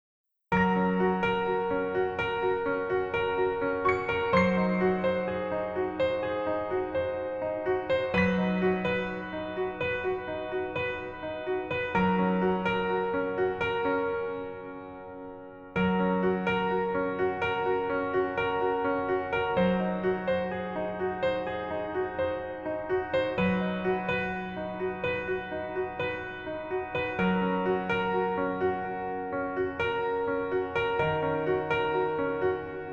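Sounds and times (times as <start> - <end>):
piano: 0.4 - 32.9.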